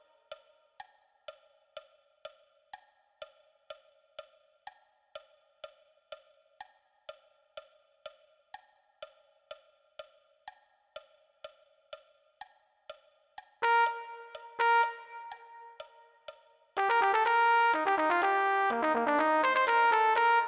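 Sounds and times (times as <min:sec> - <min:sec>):
trumpet: 0:13.6 - 0:16.1, 0:16.8 - 0:20.4.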